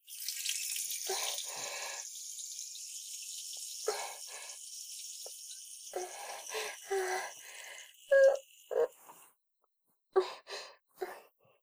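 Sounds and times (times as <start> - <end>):
urinating in a toilet: 0.0 - 9.2.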